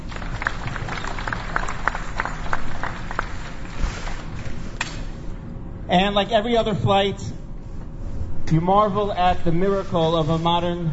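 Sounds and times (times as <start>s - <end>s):
people clapping: 0.0s - 5.0s
speech: 5.9s - 7.4s, 8.5s - 10.9s.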